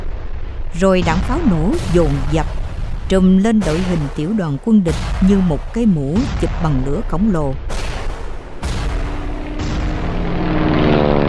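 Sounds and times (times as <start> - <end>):
speech: 0.7 - 7.7
helicopter flying overhead: 9.0 - 11.2.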